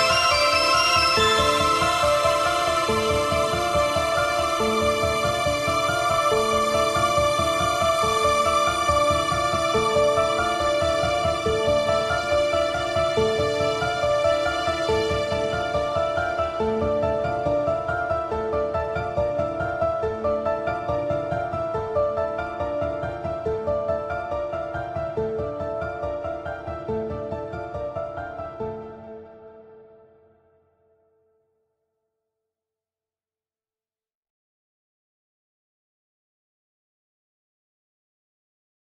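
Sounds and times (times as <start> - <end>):
mysterious royalty free music: 0.0 - 30.3.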